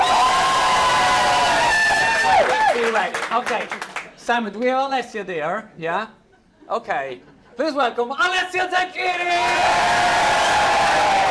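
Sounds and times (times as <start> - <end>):
audience cheering and clapping on cue at a count of three: 0.0 - 4.1, 9.3 - 11.2
speech: 2.9 - 11.2.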